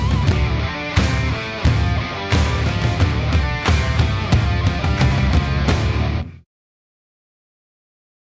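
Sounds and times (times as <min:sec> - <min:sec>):
instrumental stadium rock riff: 0:00.0 - 0:06.4.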